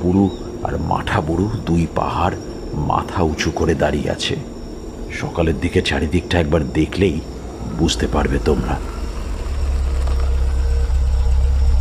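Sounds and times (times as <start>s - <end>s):
speech: 0.0s - 4.5s, 5.1s - 9.0s
faint hum: 0.0s - 11.7s
car engine idling as the car pulls up beside a tin-roofed brick house: 7.0s - 11.7s.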